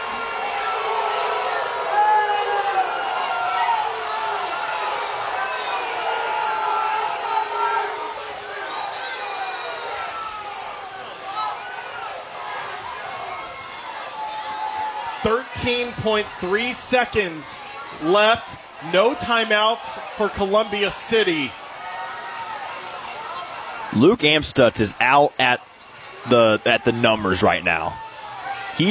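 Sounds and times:
basketball crowd cheering and shouting in gym: 0:00.0 - 0:28.8
speech: 0:15.2 - 0:21.6, 0:23.9 - 0:28.0.

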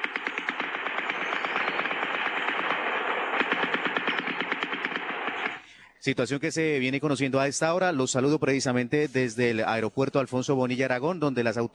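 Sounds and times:
gunfire from armed combat: 0:00.0 - 0:05.7
speech: 0:06.0 - 0:11.7.

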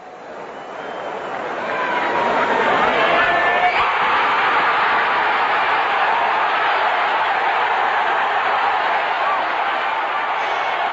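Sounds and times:
stadium crowd cheering a high jump: 0:00.0 - 0:10.9
whistles: 0:00.4 - 0:01.4.

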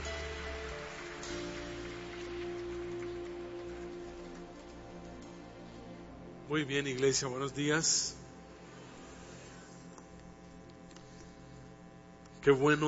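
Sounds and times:
church congregation applauding: 0:00.0 - 0:06.1
speech: 0:06.5 - 0:08.2, 0:12.4 - 0:12.8.

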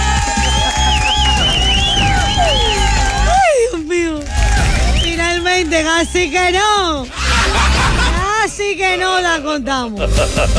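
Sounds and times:
crowd cheering: 0:00.0 - 0:08.5
shrill whistles: 0:00.1 - 0:03.5, 0:04.6 - 0:06.7
laughter: 0:00.6 - 0:03.8, 0:07.0 - 0:08.8, 0:09.9 - 0:10.5
speech: 0:06.0 - 0:07.2, 0:08.6 - 0:10.5.

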